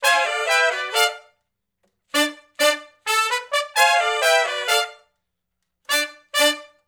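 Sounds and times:
R&B horn section riff in D, harmony to unison: 0.0s - 1.4s, 2.1s - 5.1s, 5.9s - 6.8s.

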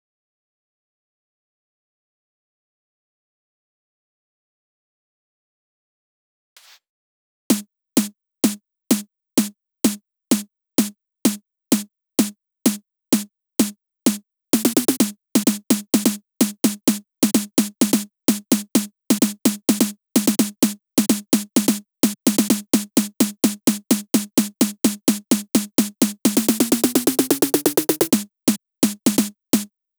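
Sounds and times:
snare drum loop: 7.5s - 29.7s.

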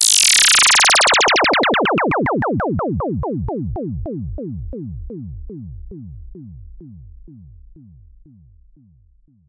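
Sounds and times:
synth effects: 0.0s - 3.9s.

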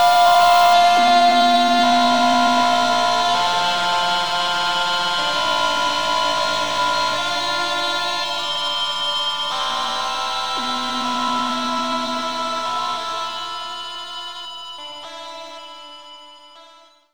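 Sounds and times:
dissonant chords: 0.0s - 8.4s, 9.4s - 14.1s.

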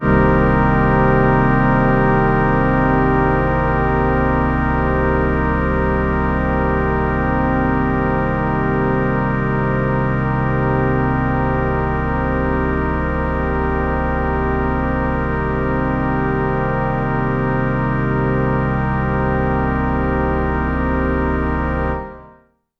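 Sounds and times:
organ synth: 0.0s - 22.4s.

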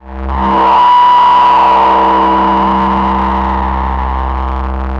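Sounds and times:
Korg MS-20 synthesizer pad on C2: 0.3s - 4.9s.

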